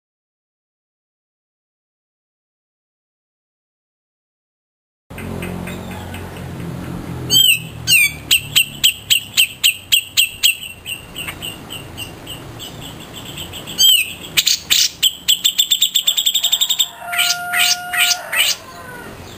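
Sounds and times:
grey-cheeked bulbul song: 5.1 - 19.3.

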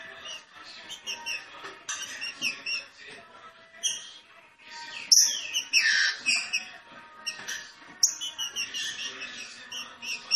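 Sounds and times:
green-winged saltator song with rich whistled phrases: 0.2 - 2.9, 4.9 - 6.7, 7.3 - 10.3.

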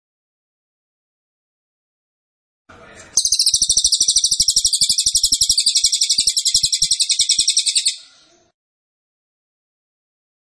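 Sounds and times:
cililin high buzzy trill: 3.2 - 8.2.

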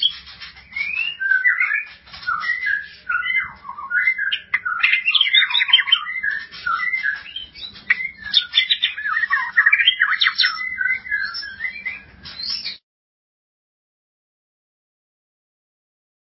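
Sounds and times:
White-rumped shama singing: 0.0 - 12.8.

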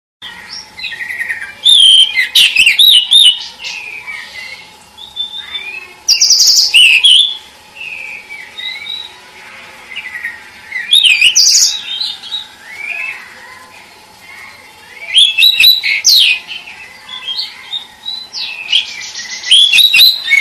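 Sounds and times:
cage bird training song with rapid chirps and sweeping whistles: 0.3 - 9.2, 10.0 - 13.2, 14.9 - 20.4.

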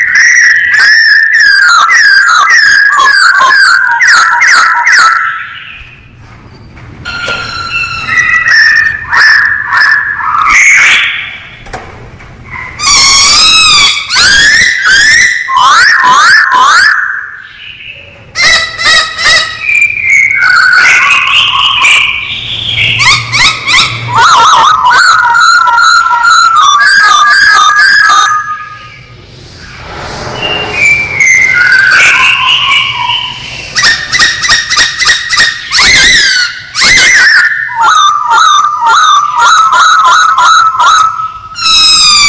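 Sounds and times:
masked laughingthrush whistling song: 0.0 - 6.1, 7.1 - 11.6, 12.6 - 42.2.

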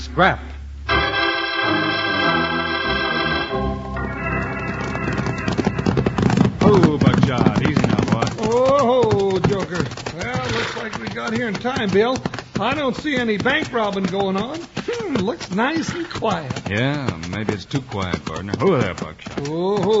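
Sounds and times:
speech: 0.2 - 0.5, 6.7 - 19.9
lathered horses' hooves clip-clopping at a walk: 1.7 - 19.9.

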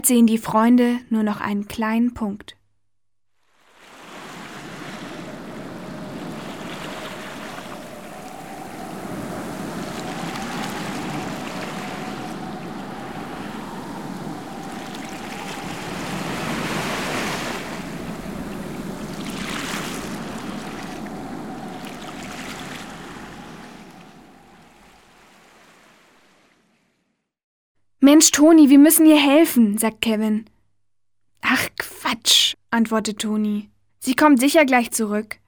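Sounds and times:
speech: 0.0 - 2.6, 28.1 - 30.5, 31.5 - 35.4
crashing ocean surf with high waves at a beach: 3.5 - 26.6
strong wind roaring over the ocean at a beach: 3.7 - 26.2.

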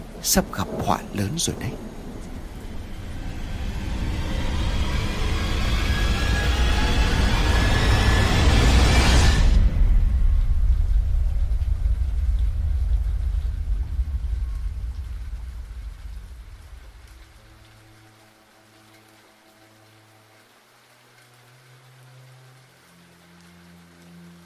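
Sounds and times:
low steady rumble: 0.0 - 18.1
steady light rain falling: 0.0 - 24.4
speech: 0.2 - 2.0
loud thunderclap at night during a rainstorm: 9.0 - 17.3.

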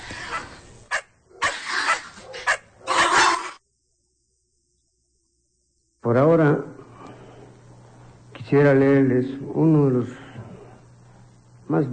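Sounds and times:
dogs barking and yelping: 0.0 - 3.6
speech: 6.1 - 6.7, 8.5 - 10.2, 11.7 - 11.9.

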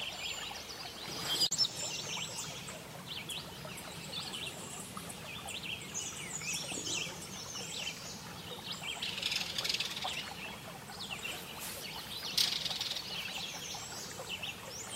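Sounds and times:
several birds with high sweeping chirps and twittering: 0.0 - 14.9
steady hiss: 11.2 - 13.1.

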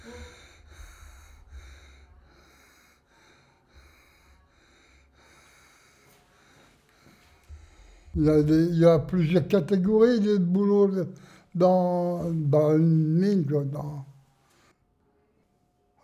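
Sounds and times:
laboured breathless breathing of a former miner with silicosis: 0.0 - 8.9, 10.0 - 12.8
speech: 8.2 - 14.1.

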